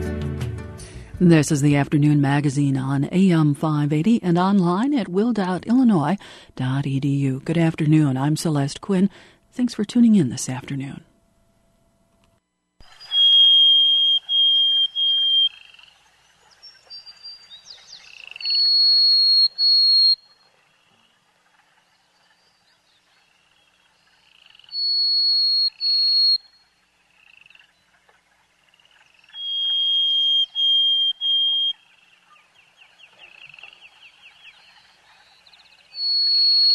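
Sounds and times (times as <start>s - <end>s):
speech: 1.2s - 11.1s
Harris's sparrow song: 12.9s - 15.8s, 16.4s - 20.5s, 24.6s - 26.7s, 29.2s - 36.7s.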